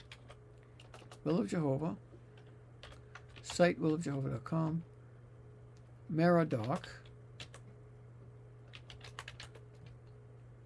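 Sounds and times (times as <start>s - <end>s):
typing a search on a computer keyboard: 0.0s - 1.3s, 2.4s - 4.3s, 6.5s - 7.7s, 8.6s - 10.0s
speech: 1.2s - 2.1s, 3.6s - 4.9s, 6.1s - 7.0s.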